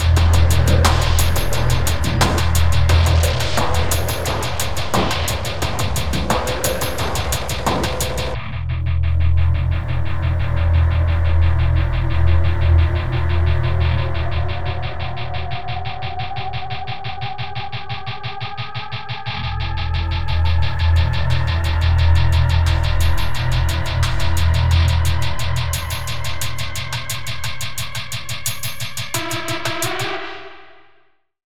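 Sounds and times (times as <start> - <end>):
intense industrial music: 0.0 - 17.7, 19.6 - 30.4.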